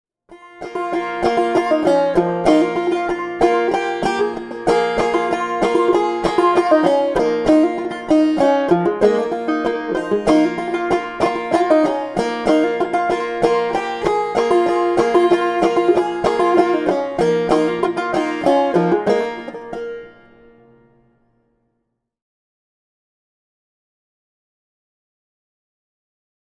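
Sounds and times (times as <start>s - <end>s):
banjo: 0.3s - 21.3s.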